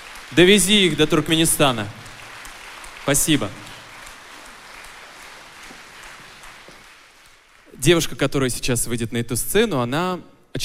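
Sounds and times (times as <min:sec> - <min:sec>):
crowd audience applause: 0:00.0 - 0:07.8
speech: 0:00.3 - 0:02.0, 0:03.1 - 0:03.7, 0:07.8 - 0:10.6.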